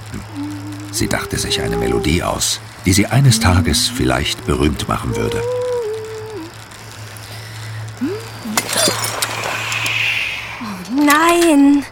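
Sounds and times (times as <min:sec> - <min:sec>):
speech: 0:00.1 - 0:05.7, 0:11.3 - 0:11.8
broken glass shards crunching: 0:08.6 - 0:10.1.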